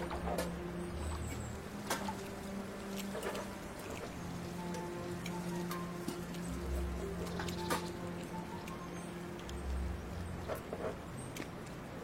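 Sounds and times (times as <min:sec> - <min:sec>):
ducks splashing in the water: 0:00.0 - 0:12.0
low engine-like hum with faint whine: 0:00.0 - 0:12.0
soft dripping patter: 0:00.0 - 0:12.0.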